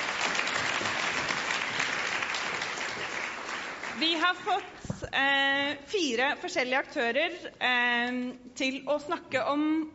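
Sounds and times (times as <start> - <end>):
audience applause at a business event: 0.0 - 4.1
speech: 4.0 - 9.9.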